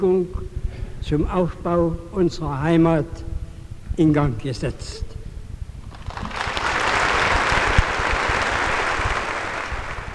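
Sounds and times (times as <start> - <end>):
speech: 0.0 - 3.3, 4.0 - 5.2
audience applause in congress hall: 5.9 - 10.1.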